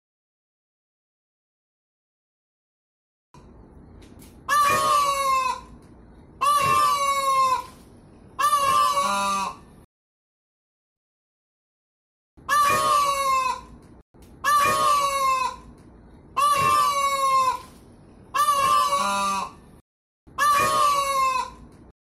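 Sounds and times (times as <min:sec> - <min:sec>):
peafowl braying calls: 0:04.4 - 0:05.8, 0:06.4 - 0:09.7, 0:12.4 - 0:13.8, 0:14.4 - 0:15.8, 0:16.4 - 0:19.6, 0:20.4 - 0:21.7.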